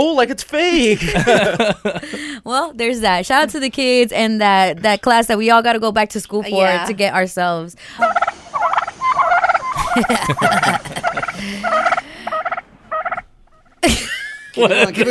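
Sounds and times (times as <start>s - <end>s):
speech: 0.0s - 8.6s, 10.0s - 12.0s, 13.8s - 15.0s
laughter: 0.8s - 2.4s, 9.8s - 12.1s, 13.8s - 15.0s
turkeys gobbling while mating: 8.0s - 13.8s.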